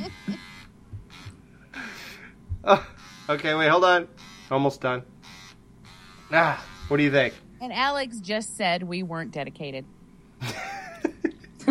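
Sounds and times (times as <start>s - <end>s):
laughter: 0.0s - 0.4s, 1.8s - 3.0s, 10.4s - 11.6s
electric hair clippers buzzing: 0.0s - 2.2s, 2.8s - 7.4s
speech: 2.6s - 5.2s, 6.3s - 10.6s.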